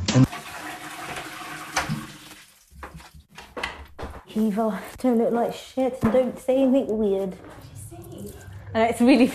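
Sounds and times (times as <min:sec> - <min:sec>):
urine stream splashing into toilet water: 0:00.2 - 0:03.1
speech: 0:04.4 - 0:07.7, 0:08.2 - 0:09.3.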